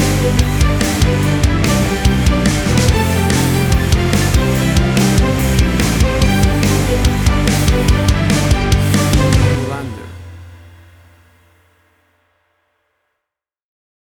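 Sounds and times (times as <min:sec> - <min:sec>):
big stadium classical rock crossover music: 0:00.0 - 0:11.1.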